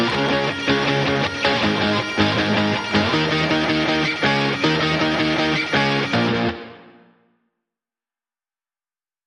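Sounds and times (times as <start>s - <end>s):
guitars playing: 0.0s - 7.2s.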